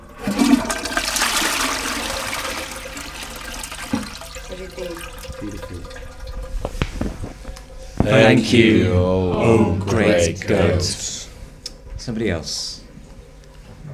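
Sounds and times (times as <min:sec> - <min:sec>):
toilet refill trickling and gurgling: 0:00.0 - 0:08.5
toilet flushing: 0:00.0 - 0:11.9
speech: 0:04.6 - 0:06.2, 0:08.1 - 0:11.1, 0:12.0 - 0:12.7.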